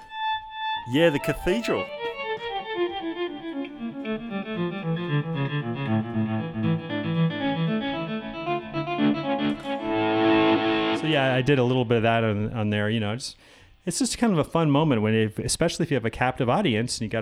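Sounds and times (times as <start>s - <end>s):
electric guitar with heavy delay: 0.0s - 12.0s
speech: 0.8s - 7.6s, 9.4s - 17.2s.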